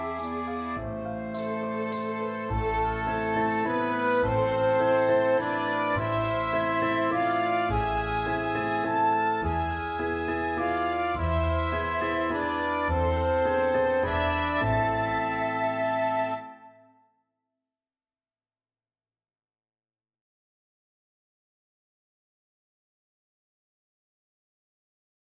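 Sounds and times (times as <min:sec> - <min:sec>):
waltz: 0:00.0 - 0:16.6.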